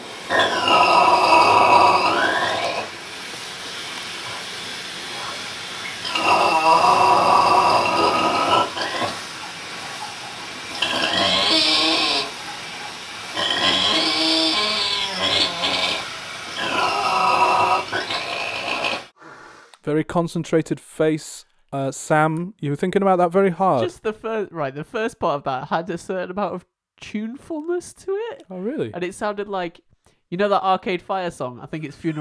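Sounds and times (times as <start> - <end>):
animal snoring: 0.3 - 3.0, 4.2 - 19.7
breathing: 19.2 - 19.8, 29.9 - 30.3
speech: 20.2 - 32.1.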